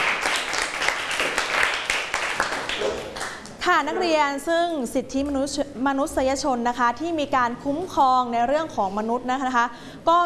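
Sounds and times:
students clapping: 0.0s - 3.6s
speech: 3.7s - 10.2s.

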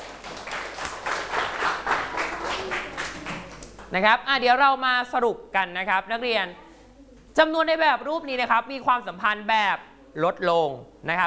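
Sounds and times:
students clapping in a classroom: 0.0s - 4.0s
speech: 3.9s - 6.6s, 7.4s - 11.2s.

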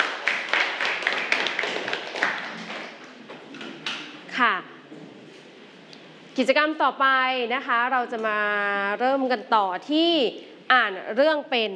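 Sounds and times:
classroom clapping for a student representative: 0.0s - 4.1s
speech: 4.4s - 4.6s, 6.4s - 11.7s.

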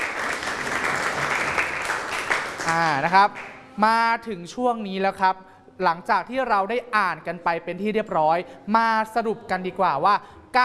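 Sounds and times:
people clapping: 0.0s - 3.7s
speech: 2.7s - 10.6s.

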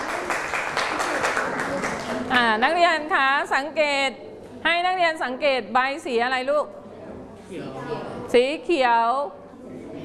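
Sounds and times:
students applauding in a classroom: 0.0s - 2.3s
speech: 2.4s - 6.8s, 7.5s - 9.4s.

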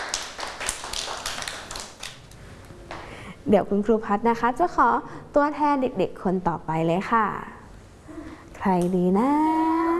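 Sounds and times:
children clapping hands: 0.0s - 2.3s
speech: 3.4s - 7.6s, 8.6s - 9.6s.

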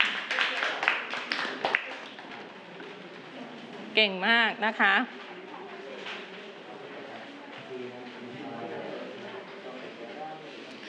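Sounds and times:
clapping for group six: 0.0s - 2.4s
speech: 4.0s - 5.2s.

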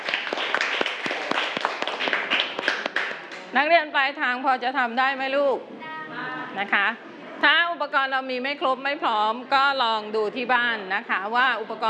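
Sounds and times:
children clapping for a classmate: 0.0s - 3.5s
speech: 3.6s - 5.8s, 6.6s - 11.8s.

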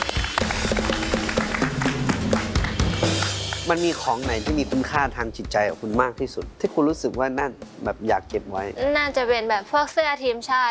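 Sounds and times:
audience applause: 0.0s - 4.0s
speech: 3.7s - 10.7s.

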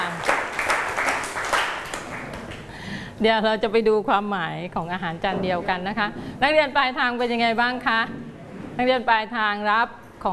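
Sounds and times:
students clapping: 0.0s - 2.8s
speech: 3.2s - 8.2s, 8.8s - 10.3s.

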